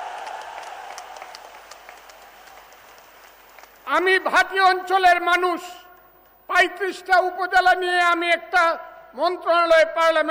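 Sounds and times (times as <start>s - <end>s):
audience applause at a political rally: 0.0s - 4.1s
individual sharp claps: 0.0s - 4.1s
speech: 3.9s - 5.8s, 6.5s - 10.2s.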